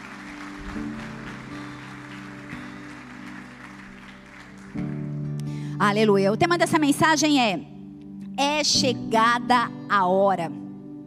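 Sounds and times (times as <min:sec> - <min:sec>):
audience applauding: 0:00.0 - 0:05.2
speech: 0:05.8 - 0:07.7, 0:08.4 - 0:10.6.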